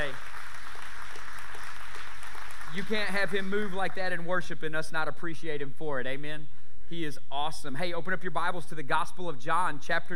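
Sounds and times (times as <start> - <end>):
crowd clapping: 0.0 - 4.0
speech: 2.8 - 10.1.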